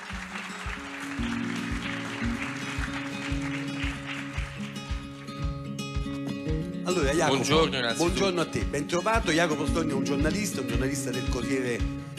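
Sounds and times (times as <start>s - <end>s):
audience applause: 0.0s - 5.7s
speech: 6.9s - 12.0s.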